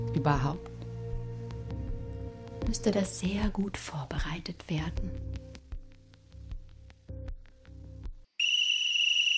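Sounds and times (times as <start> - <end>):
speech: 0.1 - 0.7, 2.7 - 5.5
long piercing continuous whistle from telescreen: 8.4 - 9.3.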